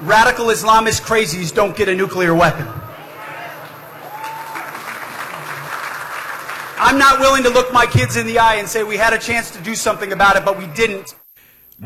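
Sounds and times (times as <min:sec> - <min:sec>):
speech: 0:00.1 - 0:02.8, 0:06.8 - 0:11.2
crowd applause: 0:02.8 - 0:09.0.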